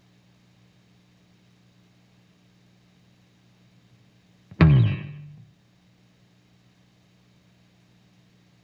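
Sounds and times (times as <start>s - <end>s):
bass slide: 4.5s - 5.4s.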